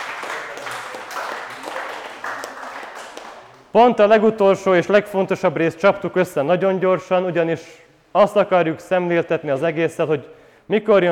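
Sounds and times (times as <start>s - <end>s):
audience applause: 0.0s - 3.7s
speech: 3.7s - 11.1s.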